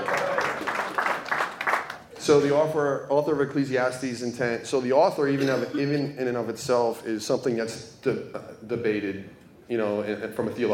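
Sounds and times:
brief round of applause: 0.0 - 2.1
speech: 2.3 - 10.7.

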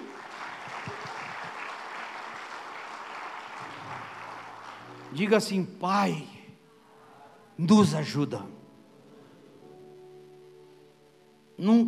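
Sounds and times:
audience applauding: 0.0 - 5.5
speech: 5.2 - 6.4, 7.6 - 8.6, 11.6 - 11.8.

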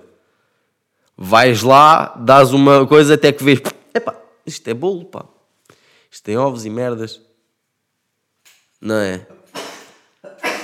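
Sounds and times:
speech: 1.2 - 5.4, 6.1 - 7.3, 8.8 - 9.4
person sneezing: 9.5 - 10.6.

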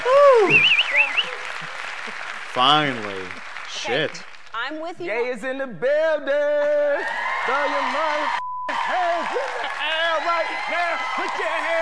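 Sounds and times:
high warbling whoop: 0.0 - 1.1
audience clapping: 0.0 - 4.6, 7.0 - 11.8
speech: 2.6 - 8.4, 9.0 - 9.6, 10.2 - 11.8.

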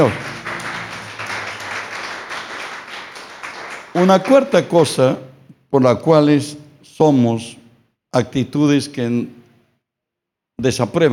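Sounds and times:
speech: 0.0 - 0.2, 4.0 - 9.4, 10.6 - 11.1
crowd applauding: 0.0 - 4.7.

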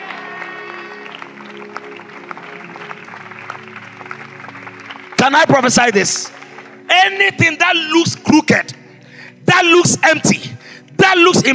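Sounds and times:
church congregation clapping at a prophetic prayer service: 0.0 - 8.2
sustained musical tones: 0.7 - 9.9
speech: 5.2 - 6.4, 7.1 - 8.7, 9.6 - 10.5, 11.1 - 11.5.

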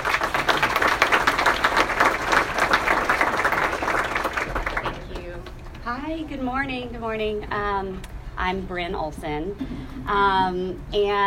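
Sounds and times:
audience applause welcoming a speaker: 0.0 - 5.6
speech: 6.2 - 11.2.

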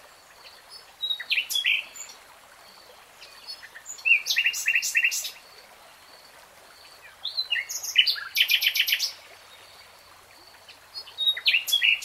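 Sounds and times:
nightingale song: 0.4 - 2.2, 3.2 - 5.4, 6.9 - 9.9, 10.5 - 12.0.

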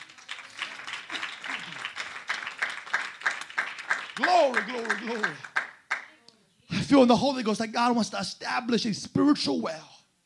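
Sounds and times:
crowd clapping: 0.0 - 6.2
speech: 4.2 - 5.5, 6.9 - 9.9.

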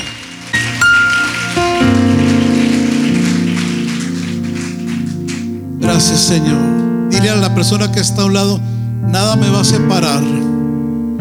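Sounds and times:
audience applauding: 0.0 - 5.6
speech: 6.0 - 10.5.

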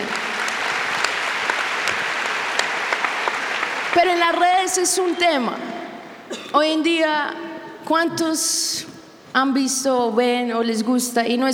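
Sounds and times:
audience applause: 0.0 - 4.8
speech: 4.0 - 5.8, 6.5 - 11.5.

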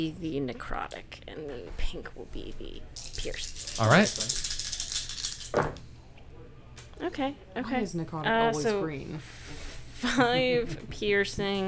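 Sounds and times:
speech: 0.0 - 4.6, 5.5 - 5.8, 7.0 - 11.6
many dice rolling: 3.0 - 5.8.

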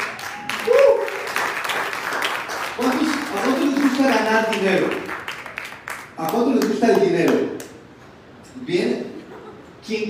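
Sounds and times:
audience applause: 0.0 - 6.7
brief vocal cheer: 0.2 - 1.3
speech: 4.0 - 5.1, 6.2 - 7.6.

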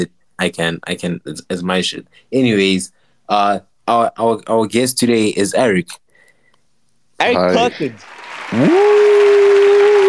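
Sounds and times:
speech: 0.0 - 6.0, 7.2 - 9.0
round of applause: 7.4 - 10.0.

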